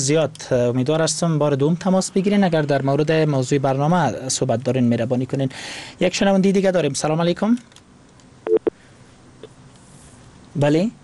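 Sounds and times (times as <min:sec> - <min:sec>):
speech: 0:00.0 - 0:07.8, 0:10.6 - 0:11.0
telephone disconnect tone, short low electronic beeps: 0:08.5 - 0:08.7.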